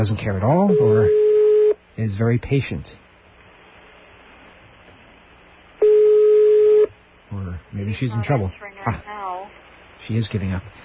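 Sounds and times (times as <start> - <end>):
speech: 0.0 - 1.2, 2.0 - 3.0, 7.3 - 9.2, 10.0 - 10.8
unanswered telephone ringing tone on the line: 0.7 - 1.8, 5.8 - 6.9.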